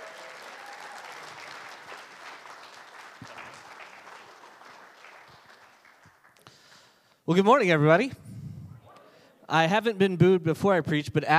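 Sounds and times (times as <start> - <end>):
audience applause and cheering: 0.0 - 6.9
speech: 7.3 - 8.2, 9.5 - 11.3.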